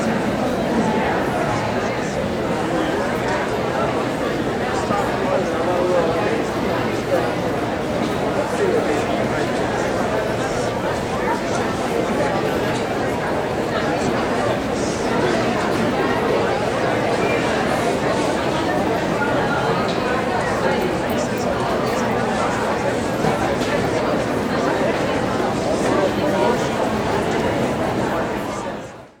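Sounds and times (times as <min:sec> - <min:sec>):
medium crowd walla in a crowded indoor room: 0:00.0 - 0:29.1.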